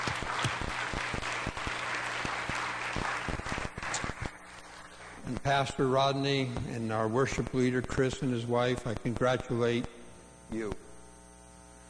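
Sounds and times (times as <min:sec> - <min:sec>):
audience applause: 0:00.0 - 0:05.2
speech: 0:05.5 - 0:10.8.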